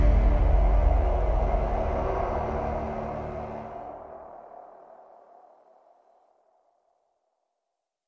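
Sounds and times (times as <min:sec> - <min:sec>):
epic cinematic trailer music: 0:00.0 - 0:04.6.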